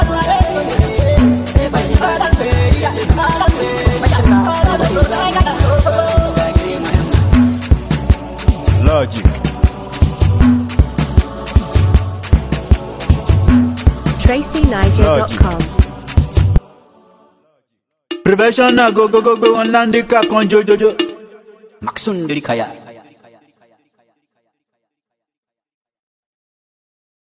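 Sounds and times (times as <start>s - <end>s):
sped-up professional beat: 0.0s - 16.6s, 18.1s - 21.3s.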